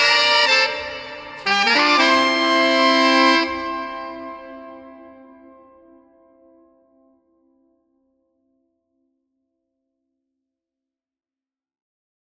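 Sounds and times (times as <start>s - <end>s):
horn section in a hall: 0.0s - 5.4s.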